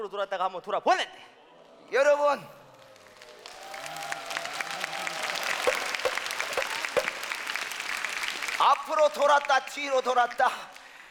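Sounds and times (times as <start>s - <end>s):
speech: 0.0s - 2.6s, 8.6s - 10.8s
audience applause: 2.7s - 11.0s.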